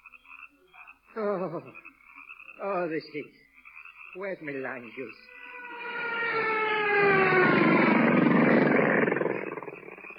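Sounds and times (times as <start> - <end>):
speech: 1.2 - 1.9, 2.6 - 3.4, 4.1 - 5.3
mosquitoes buzzing: 4.9 - 10.1.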